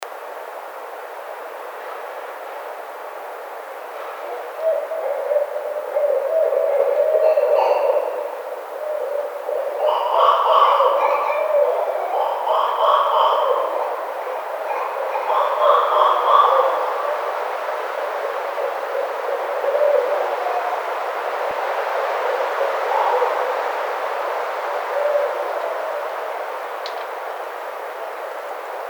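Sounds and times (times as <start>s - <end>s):
Barred Owl calling: 4.2s - 17.4s, 18.0s - 21.3s, 22.2s - 26.7s.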